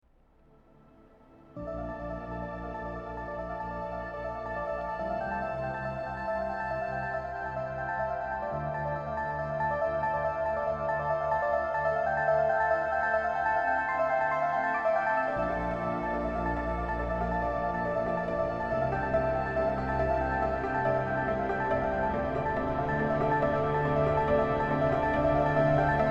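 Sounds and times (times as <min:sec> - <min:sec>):
inspiring cinematic ambient music: 0:00.5 - 0:26.1.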